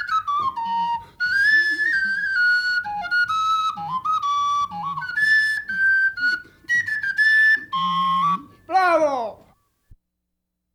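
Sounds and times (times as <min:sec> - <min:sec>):
cane flute playing a quadriglia: 0:00.0 - 0:09.5.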